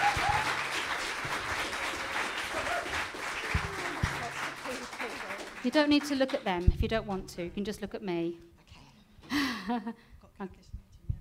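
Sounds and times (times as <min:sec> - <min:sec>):
audience applause: 0:00.0 - 0:06.5
speech: 0:05.6 - 0:08.5, 0:09.7 - 0:10.8.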